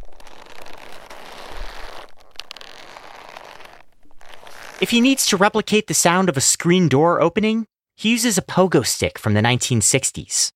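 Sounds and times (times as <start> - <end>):
leather creak from old ammo pouch: 0.0 - 5.2
speech: 4.8 - 10.5.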